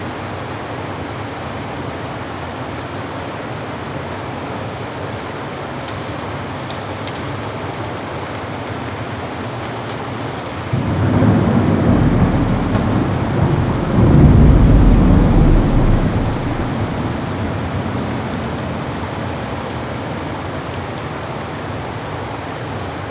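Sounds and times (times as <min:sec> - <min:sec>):
rainstorm: 0:00.0 - 0:23.1
ocean ambience: 0:10.7 - 0:22.2.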